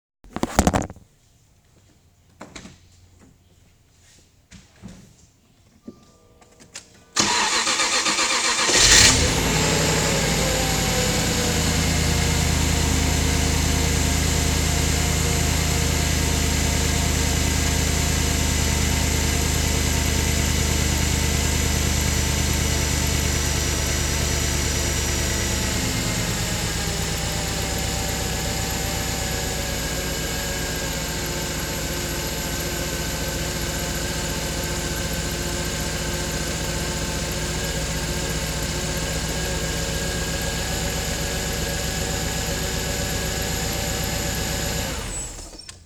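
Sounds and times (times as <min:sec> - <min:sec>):
XKR engine rough start: 0:07.2 - 0:45.6.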